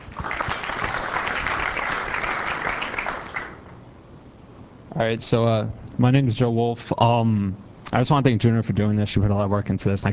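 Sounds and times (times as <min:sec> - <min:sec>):
audience clapping hands: 0:00.0 - 0:03.8
speech: 0:05.0 - 0:10.1.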